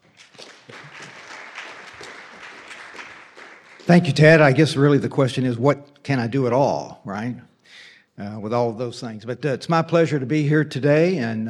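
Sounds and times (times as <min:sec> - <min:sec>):
audience applause welcoming a speaker to the podium: 0:00.0 - 0:04.7
speech: 0:03.9 - 0:07.5, 0:08.2 - 0:11.4.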